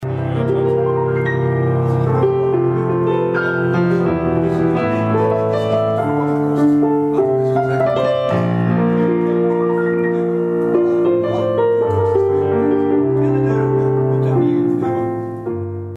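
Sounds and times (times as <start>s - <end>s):
Yamaha YDP142 digital piano: 0.0s - 15.9s.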